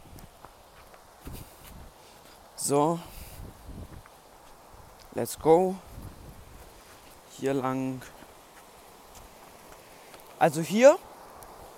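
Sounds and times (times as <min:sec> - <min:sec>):
footsteps walking outdoors toward a river: 0:00.0 - 0:05.2, 0:05.8 - 0:10.4
steady noise: 0:00.0 - 0:11.7
speech: 0:02.7 - 0:03.1, 0:05.2 - 0:05.9, 0:07.4 - 0:08.2, 0:10.4 - 0:11.1.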